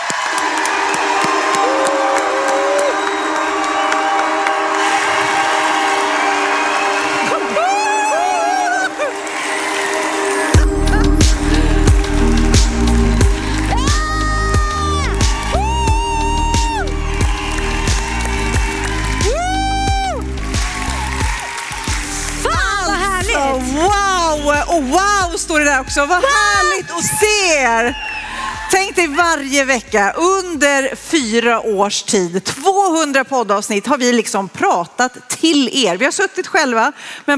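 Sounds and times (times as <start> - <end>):
live audience applause: 0.0 - 24.5, 26.2 - 28.9
live audience cheering with whoops and shrieks: 0.0 - 29.5
pounding music beat: 0.0 - 30.6
speech: 25.9 - 26.4, 27.0 - 28.1, 28.8 - 37.3.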